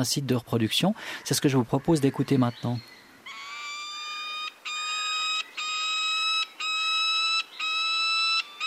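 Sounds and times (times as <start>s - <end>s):
speech: 0.0s - 3.0s
falcon calls: 3.2s - 8.6s.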